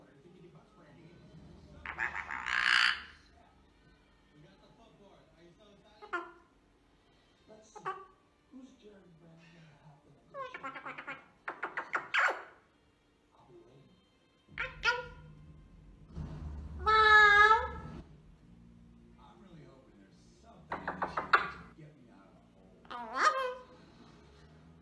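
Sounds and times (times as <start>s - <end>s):
eclectus parrot squawking: 1.8s - 3.3s, 6.0s - 6.5s, 7.7s - 8.2s, 10.3s - 12.7s, 14.5s - 15.4s, 16.8s - 18.0s, 20.7s - 21.7s, 22.8s - 23.8s
low rumble: 15.1s - 19.2s.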